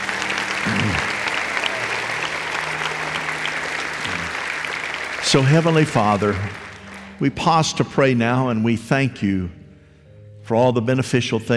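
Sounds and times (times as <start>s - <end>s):
audience applause: 0.0s - 7.7s
speech: 5.3s - 6.6s, 7.2s - 9.6s, 10.5s - 11.5s.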